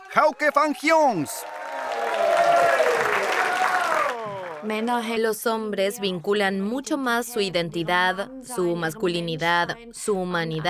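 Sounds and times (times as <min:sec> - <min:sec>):
audience applauding a comedian: 0:00.0 - 0:04.8
speech: 0:00.1 - 0:02.2, 0:04.6 - 0:10.6.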